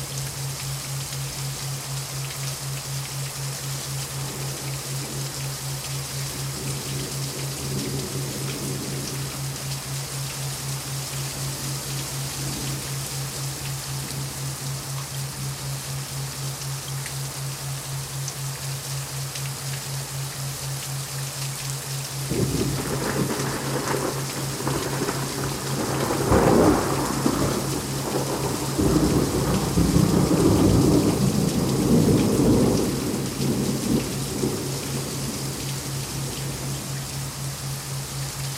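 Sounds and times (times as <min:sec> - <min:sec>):
thundering rainstorm: 0:00.0 - 0:38.5
thunder in a rainstorm: 0:22.3 - 0:33.2.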